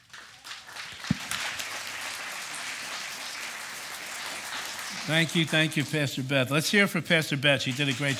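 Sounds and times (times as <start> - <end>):
audience applause welcoming a speaker: 0.0 - 6.2, 7.6 - 8.1
speech: 5.0 - 8.1.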